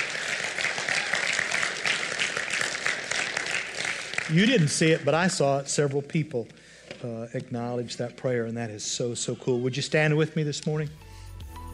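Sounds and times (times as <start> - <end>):
audience clapping: 0.0 - 5.6
speech: 4.3 - 11.0.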